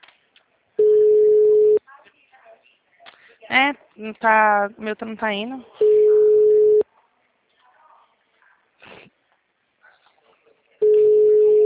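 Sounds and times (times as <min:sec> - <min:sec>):
telephone ringback tone as a call connects: 0:00.8 - 0:01.8, 0:05.8 - 0:06.8, 0:10.8 - 0:11.6
speech: 0:03.5 - 0:05.8.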